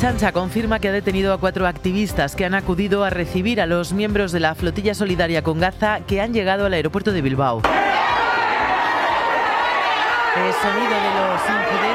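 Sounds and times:
speech: 0.0 - 8.0, 10.4 - 11.9
crowd chatter at Bilbao airport: 7.7 - 11.9
high yells: 7.7 - 11.9
people shouting as the security cordon is breached: 7.7 - 11.9.

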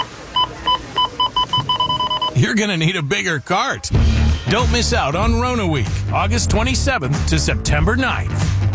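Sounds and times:
checkout scanner beeps: 0.0 - 3.3
speech: 2.4 - 8.6.

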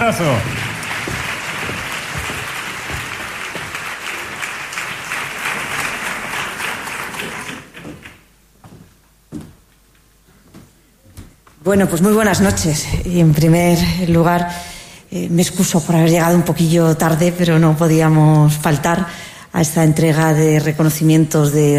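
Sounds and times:
audience applause: 0.0 - 8.2
speech: 0.1 - 0.6, 11.7 - 21.7.

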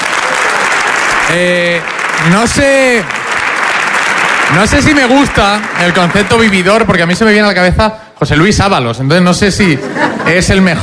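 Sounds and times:
audience applause: 0.0 - 7.1
speech: 1.3 - 3.2, 4.5 - 10.8
laughter: 9.6 - 10.8.

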